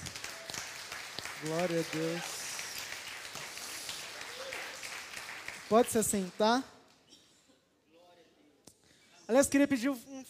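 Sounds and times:
audience applauding: 0.0 - 6.6
speech: 1.4 - 2.4, 5.7 - 6.8, 9.3 - 10.2.

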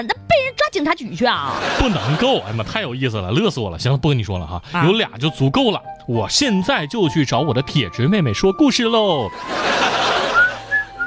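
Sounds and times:
speech: 0.0 - 10.2
laughter: 1.5 - 2.8, 9.3 - 11.0
person whistling a tune: 10.4 - 11.0.

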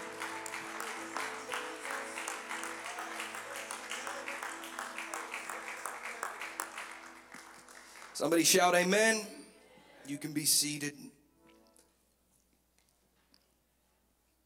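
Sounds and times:
audience clapping hands: 0.0 - 8.9
speech: 8.2 - 9.4, 10.1 - 11.1.

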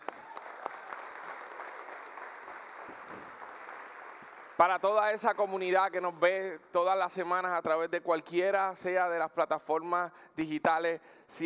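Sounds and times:
audience applause: 0.0 - 4.8
speech: 4.6 - 11.4.

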